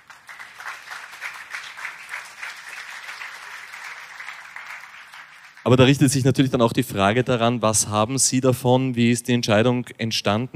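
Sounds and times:
audience applause: 0.0s - 5.8s
speech: 5.7s - 10.5s.

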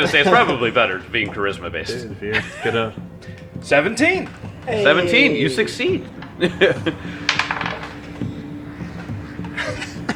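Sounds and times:
speech: 0.0s - 7.2s
laughter: 0.0s - 10.1s
dice thrown onto a table during a tabletop roleplaying game: 7.2s - 8.3s.

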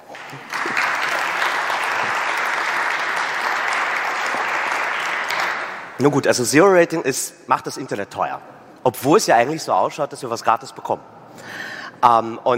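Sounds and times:
audience applause: 0.0s - 6.0s
speech: 0.3s - 0.6s, 6.0s - 12.5s.

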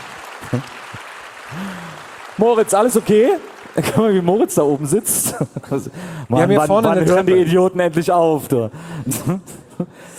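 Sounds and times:
audience applause: 0.0s - 5.2s
speech: 0.5s - 0.8s, 2.4s - 10.1s.

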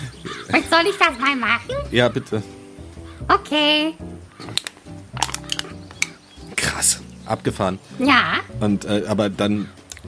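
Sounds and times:
speech: 0.6s - 2.6s, 3.3s - 4.6s, 6.8s - 9.8s
cracking snaps from pressing hard on a wooden instrument: 4.4s - 7.2s, 9.8s - 10.0s.

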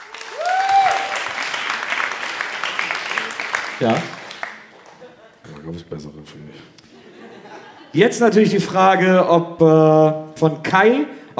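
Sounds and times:
audience applause: 0.0s - 5.3s
speech: 3.8s - 4.2s, 5.7s - 6.8s, 7.9s - 11.3s
laughter: 4.6s - 5.6s, 6.8s - 8.1s.

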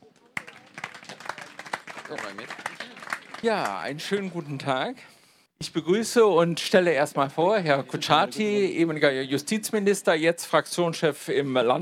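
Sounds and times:
audience applause: 0.2s - 4.6s
speech: 2.1s - 11.8s.

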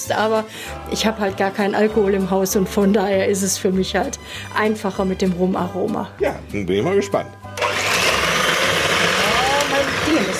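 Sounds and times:
speech: 0.0s - 7.6s
kitchen mixer running: 7.6s - 10.3s.

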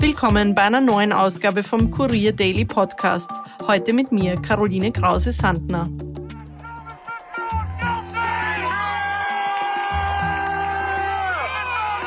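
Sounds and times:
speech: 0.1s - 6.1s
crowd cheering: 6.2s - 12.0s.

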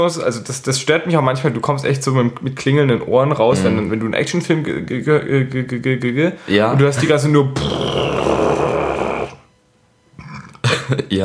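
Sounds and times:
speech: 0.0s - 8.7s, 10.9s - 11.2s
burp: 7.6s - 9.5s, 10.2s - 10.8s.

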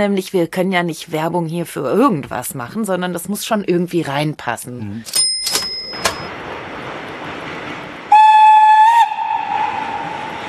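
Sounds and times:
speech: 0.0s - 5.3s
sharp clanks: 5.1s - 6.3s
train rumbling on rails: 5.8s - 10.4s
train whistle blast: 8.1s - 10.4s.

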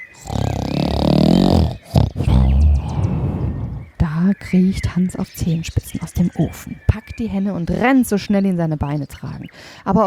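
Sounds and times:
giant snoring loudly: 0.0s - 3.9s
speech: 4.5s - 10.0s.

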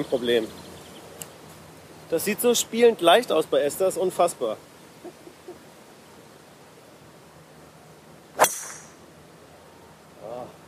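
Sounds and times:
speech: 0.0s - 0.7s, 2.1s - 5.2s
golf club striking a ball on a mild slice: 8.4s - 9.0s.

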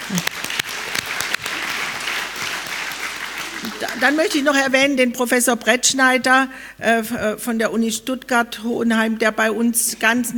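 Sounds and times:
hand clapping: 0.0s - 4.5s
speech: 0.1s - 0.5s, 3.7s - 10.3s.

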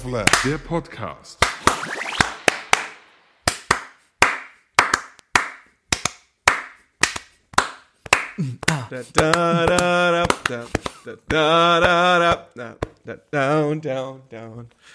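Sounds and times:
hand clapping in a steady beat: 0.3s - 0.5s, 1.4s - 11.0s
speech: 0.4s - 2.0s, 8.4s - 14.9s.

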